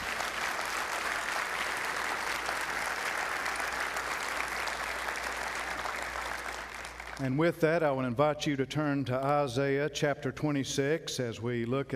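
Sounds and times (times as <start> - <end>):
audience applause: 0.0 - 7.2
speech: 7.2 - 11.9.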